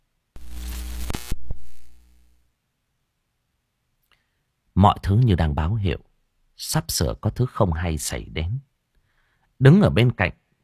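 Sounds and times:
electrical short-circuit buzzing crackle: 0.4 - 2.5
speech: 4.8 - 8.7, 9.6 - 10.4.

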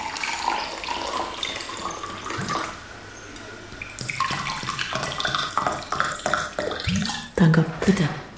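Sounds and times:
still water poured into glasses: 0.0 - 7.4
speech: 7.4 - 8.2.

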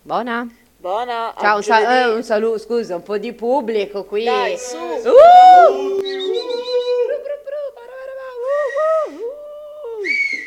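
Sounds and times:
speech: 0.0 - 6.2
person whistling a tune: 6.0 - 7.0, 8.5 - 9.2, 10.0 - 10.4.

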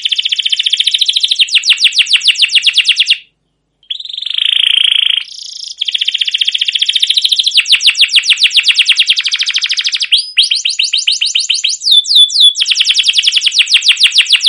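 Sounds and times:
canary song with long rolling trills and cuit cuit notes: 0.0 - 14.4.

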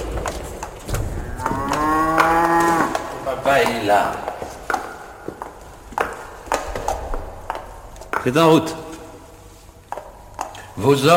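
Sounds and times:
cow mooing: 1.0 - 3.1
speech: 3.5 - 4.3, 8.2 - 8.8, 10.8 - 11.1.

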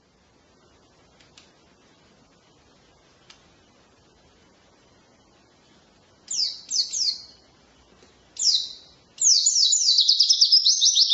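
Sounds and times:
white-eye thin downslurred calls and twittering: 6.3 - 7.4, 8.4 - 11.1.

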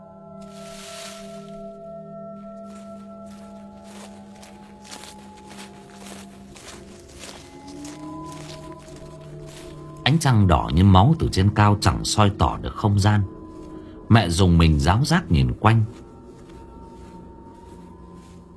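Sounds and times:
shuffling footsteps coming down a slope: 0.4 - 10.7, 14.6 - 18.5
speech: 10.1 - 13.4, 14.1 - 16.0.

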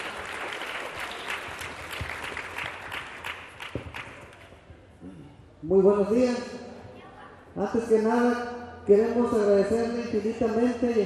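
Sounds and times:
audience applause at an anniversary forum panel: 0.0 - 4.2
speech: 5.6 - 6.6, 7.6 - 11.0.

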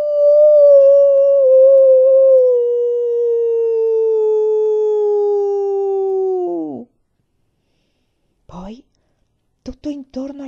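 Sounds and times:
human voice imitating a large wolf howling toward the moon: 0.0 - 6.9.

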